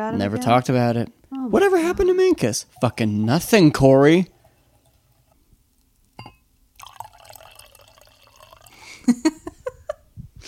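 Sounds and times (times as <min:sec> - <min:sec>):
speech: 0:00.0 - 0:04.3, 0:09.1 - 0:09.4
liquid poured into a glass: 0:02.4 - 0:09.1.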